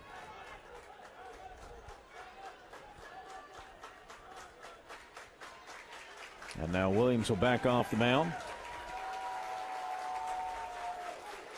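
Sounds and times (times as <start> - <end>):
Buffalo baseball stadium crowd cheering: 0.0 - 11.5
speech: 6.5 - 8.5.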